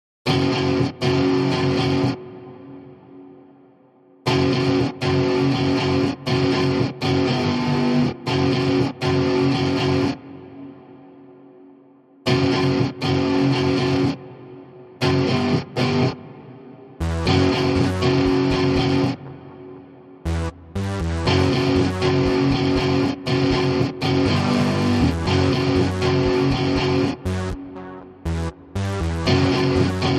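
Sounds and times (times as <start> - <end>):
chase lead riffs: 0.3 - 3.5, 4.2 - 10.8, 12.2 - 30.1.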